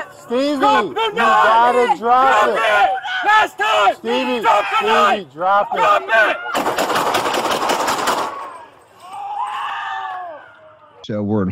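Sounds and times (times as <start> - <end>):
speech: 0.3 - 7.0, 11.1 - 11.4
police officer firing nine rounds in a rapid volley on body cam: 6.6 - 8.5.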